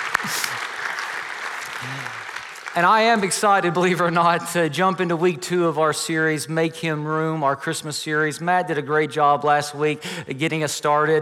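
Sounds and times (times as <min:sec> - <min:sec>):
church congregation applause welcoming online worshippers: 0:00.0 - 0:04.1
speech: 0:02.8 - 0:11.2.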